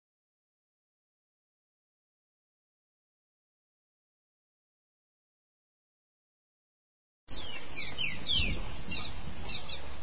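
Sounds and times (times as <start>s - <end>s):
green-winged saltator song: 7.3s - 10.0s.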